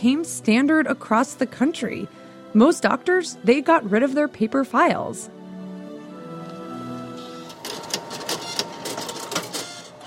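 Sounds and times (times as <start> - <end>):
speech: 0.0 - 5.4
fax machine printing: 6.5 - 10.0.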